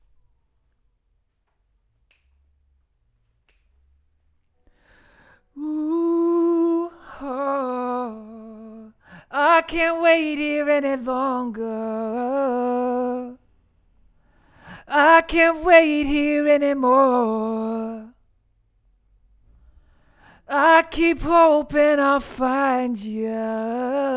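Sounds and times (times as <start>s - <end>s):
vocals: 4.9s - 13.6s, 14.3s - 18.3s, 19.8s - 24.1s.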